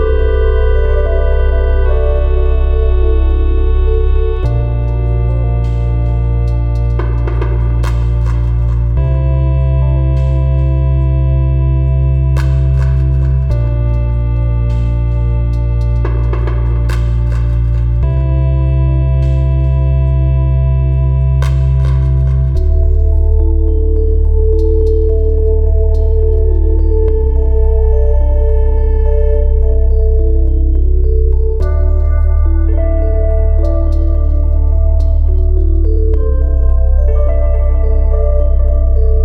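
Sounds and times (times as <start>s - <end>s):
autumn ambient music jam: 0.0s - 39.2s.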